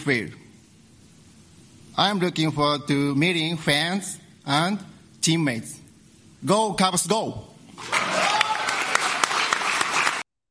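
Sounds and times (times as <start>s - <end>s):
speech: 0.0s - 0.4s, 2.0s - 5.8s, 6.4s - 8.3s
crowd whooping and cheering: 7.8s - 10.2s.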